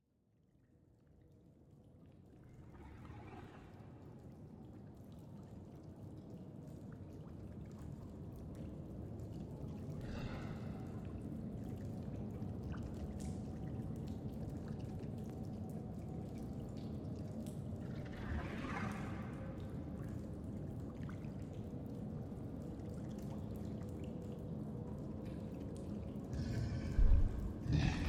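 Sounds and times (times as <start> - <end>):
cave ambience: 5.9 - 28.0.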